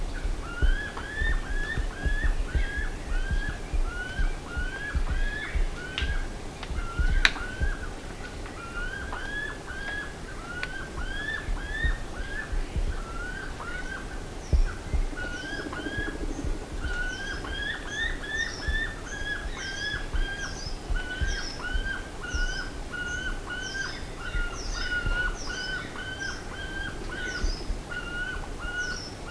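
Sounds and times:
low rumble: 0:00.0 - 0:08.2, 0:10.6 - 0:22.9
birds whistling: 0:00.0 - 0:29.2.

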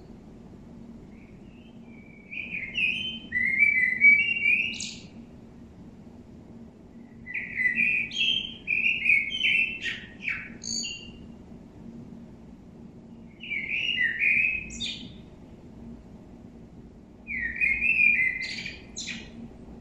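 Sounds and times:
common blackbird Turdus merula song: 0:01.0 - 0:05.3, 0:06.9 - 0:11.4, 0:13.1 - 0:15.4, 0:17.3 - 0:19.4.

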